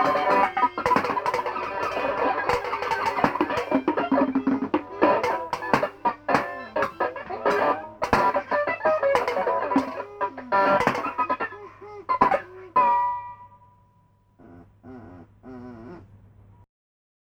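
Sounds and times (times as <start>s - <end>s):
rock and roll music: 0.0s - 11.5s.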